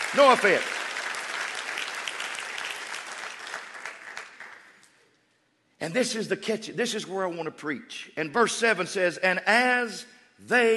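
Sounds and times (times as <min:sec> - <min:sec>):
audience clapping hands: 0:00.0 - 0:05.0
speech: 0:00.1 - 0:00.8, 0:05.8 - 0:10.7.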